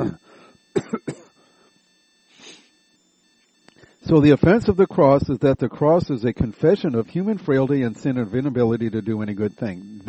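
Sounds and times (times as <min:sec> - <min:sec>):
breathy throat clearing: 0:00.0 - 0:00.2, 0:00.8 - 0:01.3
person coughing: 0:00.0 - 0:01.3
speech: 0:04.1 - 0:10.0.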